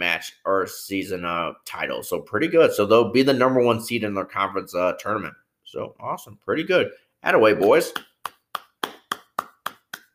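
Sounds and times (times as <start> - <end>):
speech: 0.2 - 8.1
hand clapping: 7.6 - 10.1.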